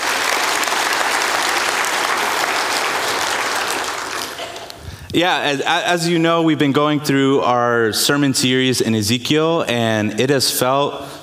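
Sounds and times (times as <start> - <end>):
crowd applause: 0.0 - 4.9
speech: 5.2 - 11.2.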